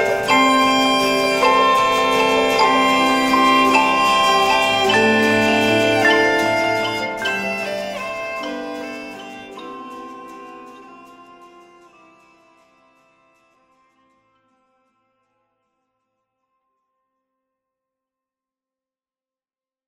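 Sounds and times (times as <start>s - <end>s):
acoustic ambience: 0.0s - 13.1s.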